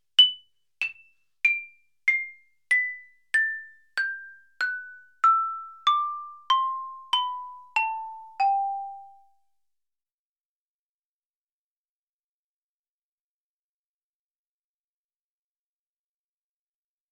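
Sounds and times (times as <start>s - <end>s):
xylophone: 0.2s - 9.4s.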